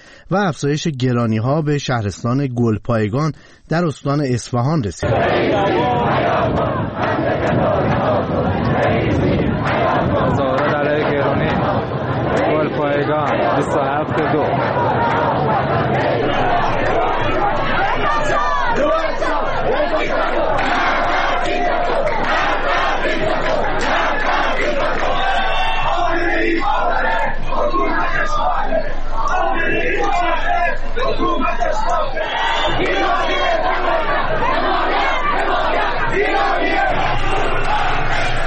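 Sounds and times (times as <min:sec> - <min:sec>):
speech: 0:00.3 - 0:09.2
large protest crowd chanting slogans: 0:05.0 - 0:38.4.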